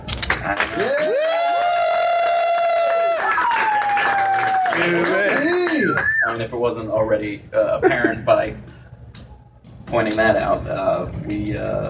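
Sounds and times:
crowd cheering: 0:00.4 - 0:06.4
speech: 0:04.8 - 0:05.2, 0:06.0 - 0:08.7, 0:09.9 - 0:11.8.

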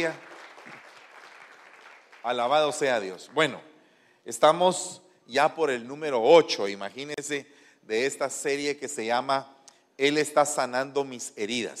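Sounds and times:
speech: 0:00.0 - 0:00.3, 0:02.2 - 0:11.7
audience applause: 0:00.0 - 0:02.8.

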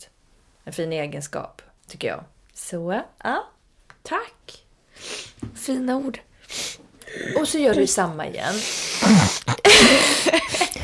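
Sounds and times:
speech: 0:00.7 - 0:04.6, 0:05.6 - 0:06.3, 0:07.1 - 0:09.3
person blowing nose into a microphone: 0:06.5 - 0:10.8.

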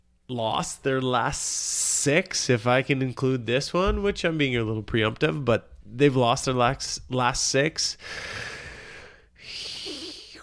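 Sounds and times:
speech: 0:00.3 - 0:08.5
deep heavy breathing imitating Darth Vader: 0:07.9 - 0:10.4.

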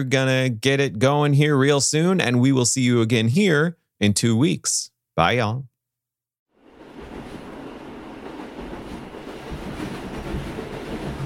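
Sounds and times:
speech: 0:00.0 - 0:05.7
lightning rail train running on rails: 0:06.6 - 0:11.2.

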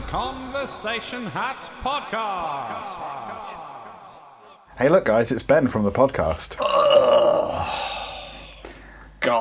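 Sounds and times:
speech: 0:00.1 - 0:03.6, 0:04.8 - 0:07.9, 0:09.2 - 0:09.4
strained throaty grunt of a failed small burp: 0:06.6 - 0:08.2
breathy exhale: 0:07.5 - 0:09.2.

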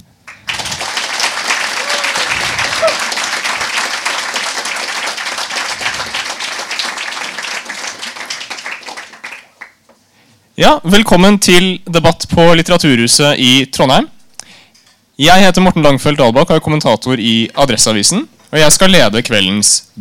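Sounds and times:
audience clapping: 0:00.2 - 0:09.9
speech: 0:10.6 - 0:14.2, 0:15.2 - 0:19.9.

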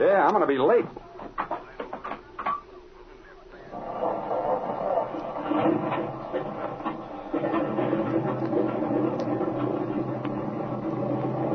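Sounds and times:
speech: 0:00.0 - 0:01.0
airplane engine running after spark plug fix: 0:03.6 - 0:11.5.

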